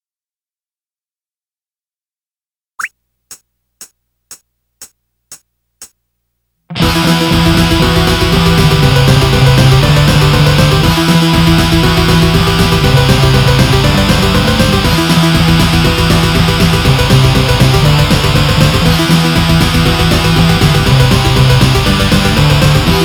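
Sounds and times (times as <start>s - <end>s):
guitars: 6.7s - 23.0s.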